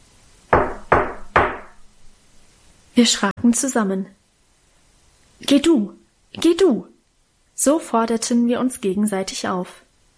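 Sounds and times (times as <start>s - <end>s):
knocking on a wooden front door: 0.5s - 1.8s
speech: 3.0s - 4.2s, 5.4s - 6.9s, 7.6s - 9.8s.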